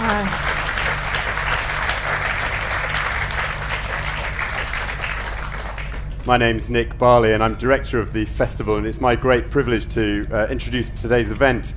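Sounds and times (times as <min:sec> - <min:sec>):
audience applause: 0:00.0 - 0:06.2
speech: 0:06.3 - 0:11.7.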